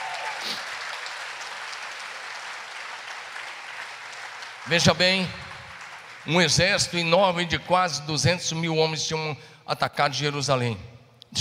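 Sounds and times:
audience applause: 0.0s - 6.7s
speech: 4.6s - 5.4s, 6.2s - 11.4s.

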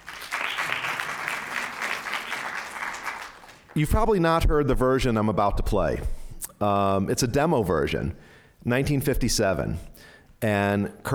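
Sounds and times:
audience clapping hands: 0.0s - 4.0s
speech: 3.8s - 11.1s.

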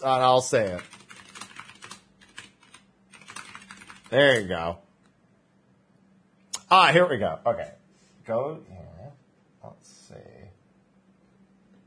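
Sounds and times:
speech: 0.0s - 1.0s, 4.1s - 4.8s, 6.7s - 8.9s, 9.6s - 10.5s
typing on a computer keyboard: 0.6s - 4.4s.

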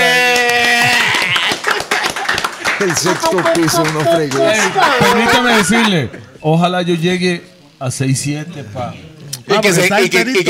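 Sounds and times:
applause: 0.0s - 5.1s
laughter: 0.0s - 6.4s
speech: 2.9s - 10.4s.

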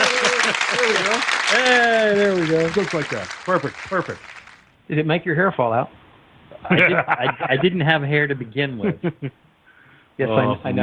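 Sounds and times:
laughter: 0.0s - 4.3s, 6.5s - 9.4s
canned applause sound effect from a button: 0.0s - 4.7s
voices cheering: 0.0s - 4.7s, 6.6s - 7.9s
speech: 0.8s - 6.0s, 6.6s - 9.4s, 10.2s - 10.8s.

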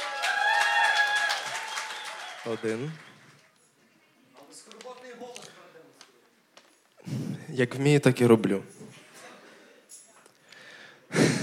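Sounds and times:
audience applause: 0.0s - 3.6s
speech: 2.4s - 3.1s, 7.5s - 8.8s.

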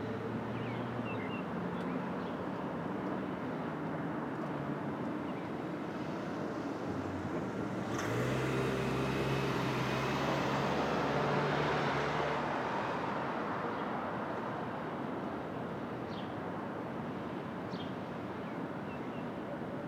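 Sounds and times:
street traffic at dawn: 0.0s - 19.8s
vehicle passing: 6.4s - 13.2s.

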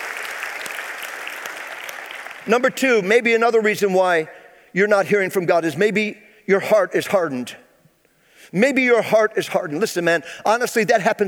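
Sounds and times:
audience applause: 0.0s - 2.5s
speech: 2.4s - 7.6s, 8.5s - 11.2s.

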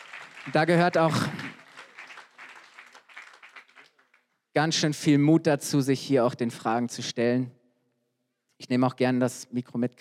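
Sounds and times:
crowd applauding: 0.0s - 4.3s
speech: 0.4s - 1.4s, 4.6s - 7.6s, 8.6s - 9.9s.

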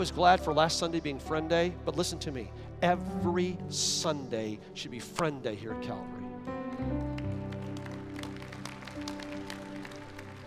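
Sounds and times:
speech: 0.0s - 7.0s
sustained low musical tones: 0.0s - 10.4s
audience applauding: 6.6s - 10.4s.

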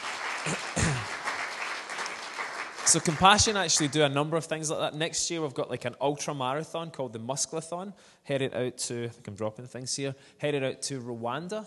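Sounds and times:
audience applause: 0.0s - 4.2s
speech: 2.9s - 11.6s.

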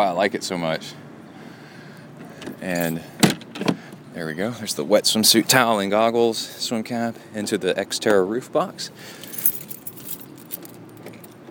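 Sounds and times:
speech: 0.0s - 1.0s, 2.6s - 9.2s
keys jangling while unlocking an Xterra: 9.2s - 11.5s.

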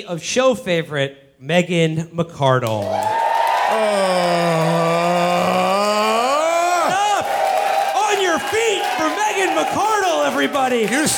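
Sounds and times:
speech: 0.0s - 3.1s, 3.7s - 4.6s, 9.4s - 11.1s
applause: 2.8s - 11.1s
audience cheering with whoops and shouts: 2.8s - 11.1s.

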